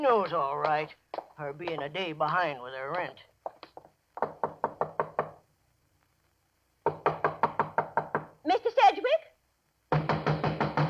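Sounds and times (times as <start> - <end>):
speech: 0.0 - 3.3, 8.4 - 9.3
knuckles knocking on a door: 3.0 - 5.4, 6.8 - 8.4, 9.9 - 10.8.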